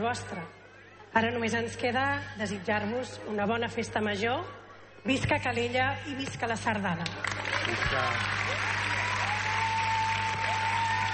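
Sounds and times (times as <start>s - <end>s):
speech: 0.0s - 8.7s
audience applause: 7.1s - 11.1s.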